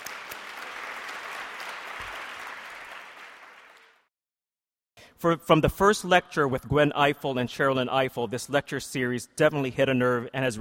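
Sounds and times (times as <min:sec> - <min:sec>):
audience applause: 0:00.0 - 0:04.1
speech: 0:05.2 - 0:10.5.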